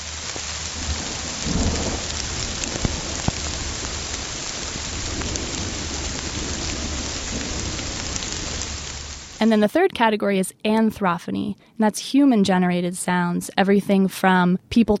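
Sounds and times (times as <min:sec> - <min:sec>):
rainstorm: 0:00.0 - 0:09.8
low rumble of thunder: 0:00.7 - 0:09.4
speech: 0:09.4 - 0:14.9.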